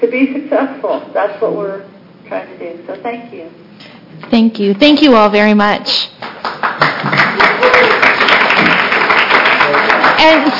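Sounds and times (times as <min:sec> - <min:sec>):
speech: 0:00.0 - 0:06.2, 0:10.2 - 0:10.5
crowd applause: 0:06.3 - 0:10.5.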